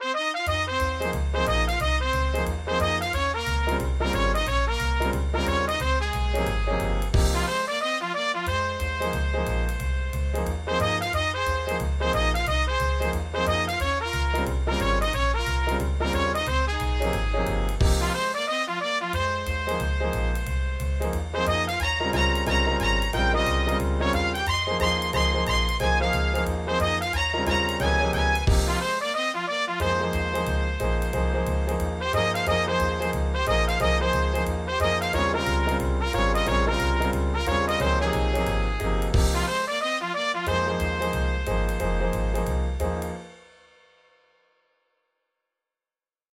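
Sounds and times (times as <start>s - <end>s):
jazz music: 0.0s - 43.5s.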